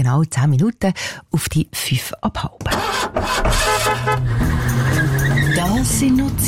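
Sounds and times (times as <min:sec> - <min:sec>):
speech: 0:00.0 - 0:06.4
old car engine chugging: 0:02.7 - 0:06.4
brassy car horn honking: 0:03.0 - 0:05.8.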